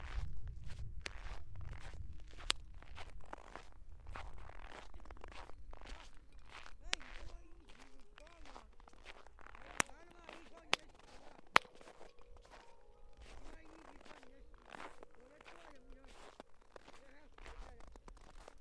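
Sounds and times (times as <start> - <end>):
hard-soled shoes stepping on snow in a Harbin blizzard: 0.0 - 18.5.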